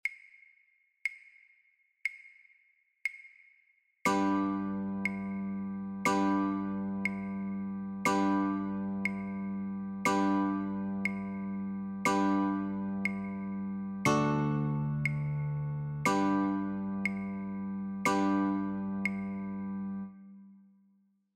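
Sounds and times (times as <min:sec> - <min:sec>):
guitar chords: 0:04.1 - 0:20.5.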